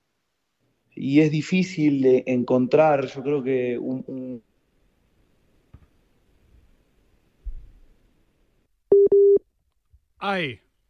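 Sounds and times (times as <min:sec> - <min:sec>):
speech: 0:01.0 - 0:04.5, 0:10.2 - 0:10.6
phone busy tone after a dropped WhatsApp audio call: 0:08.9 - 0:09.4.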